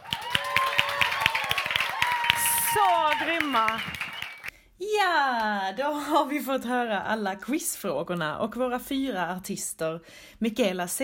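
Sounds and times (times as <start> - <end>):
audience applause: 0.0 - 4.5
speech: 2.8 - 4.0, 4.8 - 11.0.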